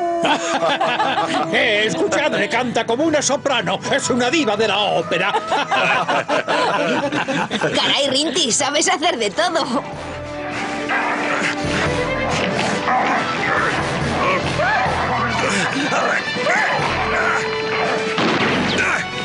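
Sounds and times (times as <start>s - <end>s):
laughter: 0.1s - 2.6s, 5.0s - 8.7s, 13.2s - 18.1s
speech: 0.2s - 10.2s
people shouting: 10.8s - 19.1s
loud crashes and smashing thuds during a dog attack: 18.2s - 19.0s.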